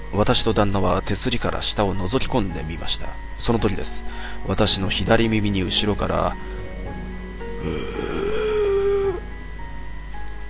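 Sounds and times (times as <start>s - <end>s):
speech: 0.2s - 6.6s, 7.6s - 8.1s
breathy groaning voice as ghost-story sound effect: 7.6s - 9.3s.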